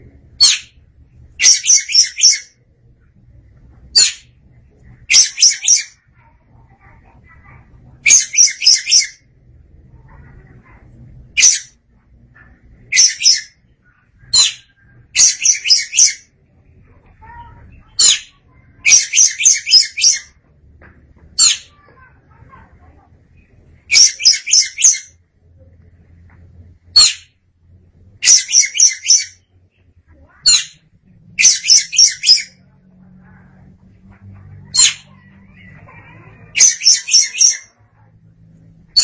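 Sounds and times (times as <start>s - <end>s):
Oriental magpie-robin singing: 0.4s - 0.8s, 1.4s - 2.6s, 4.0s - 4.3s, 5.1s - 6.0s, 8.0s - 9.3s, 11.4s - 11.7s, 12.8s - 16.3s, 17.2s - 20.4s, 21.4s - 21.8s, 23.4s - 25.2s, 27.0s - 27.3s, 28.2s - 29.5s, 30.4s - 30.8s, 31.4s - 32.7s, 34.7s - 37.8s.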